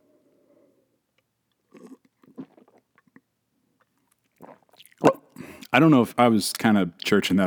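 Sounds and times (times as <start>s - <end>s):
beer sipped and swallowed: 1.6s - 7.4s
gulp: 1.7s - 3.3s, 4.4s - 7.4s
speech: 5.7s - 7.4s.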